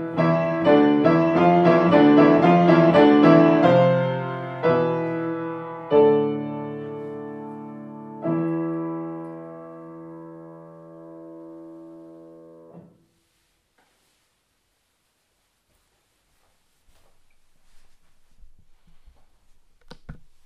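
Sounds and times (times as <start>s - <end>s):
piano: 0.0s - 13.5s.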